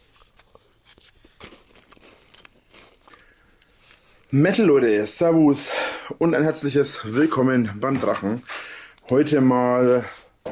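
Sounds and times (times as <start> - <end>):
crunchy chewing while eating a Kinder Joy chocolate treat: 0.0 - 4.3
speech: 4.3 - 10.2.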